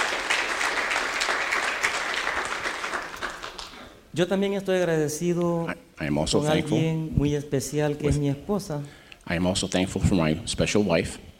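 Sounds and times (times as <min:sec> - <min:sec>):
audience applause: 0:00.0 - 0:04.0
speech: 0:04.2 - 0:11.3.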